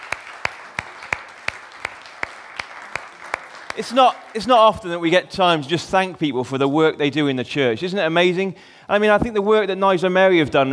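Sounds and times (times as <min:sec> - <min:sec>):
audience applauding: 0:00.0 - 0:05.5
speech: 0:03.8 - 0:10.7.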